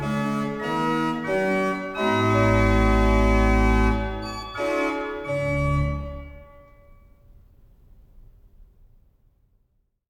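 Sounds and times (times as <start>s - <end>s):
tambourin for organ: 0.0s - 7.0s.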